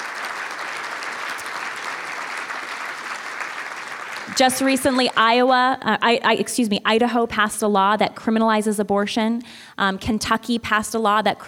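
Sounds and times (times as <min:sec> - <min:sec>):
audience applause and cheering: 0:00.0 - 0:05.1
speech: 0:04.3 - 0:11.4.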